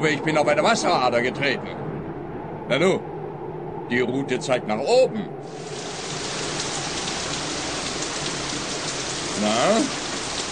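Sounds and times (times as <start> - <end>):
speech: 0.0 - 1.9, 2.7 - 3.1, 3.9 - 5.7, 9.4 - 10.0
rain shower: 5.4 - 10.5.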